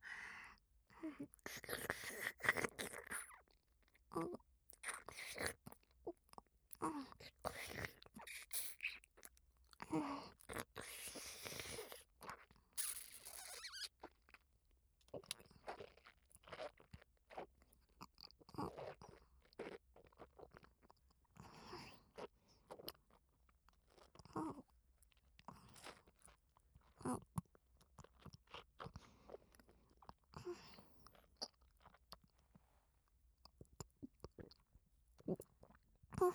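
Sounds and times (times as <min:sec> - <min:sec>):
crunching and chewing food: 0:01.3 - 0:36.3.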